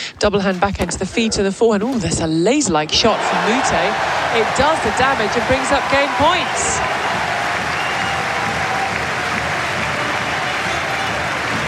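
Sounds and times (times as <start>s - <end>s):
speech: 0.2s - 7.0s
tennis crowd applauding: 3.1s - 11.6s.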